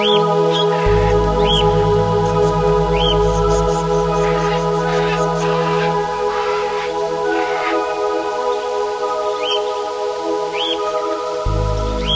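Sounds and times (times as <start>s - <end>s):
insects humming in the Amazon rainforest: 0.0s - 12.1s
low droning tone: 0.8s - 7.3s, 11.5s - 12.1s.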